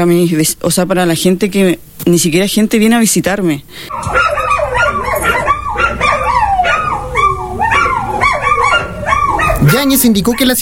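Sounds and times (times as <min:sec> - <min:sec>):
speech: 0:00.0 - 0:04.5, 0:09.7 - 0:10.5
several dogs barking and yipping: 0:03.9 - 0:10.5.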